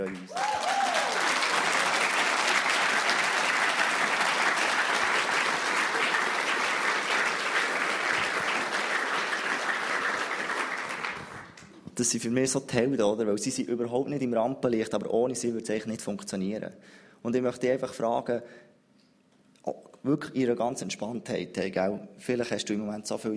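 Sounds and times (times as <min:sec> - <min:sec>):
speech: 0:00.0 - 0:00.5, 0:12.0 - 0:18.7, 0:19.6 - 0:23.3
audience applause: 0:00.0 - 0:11.6
rising whoop: 0:00.3 - 0:01.3.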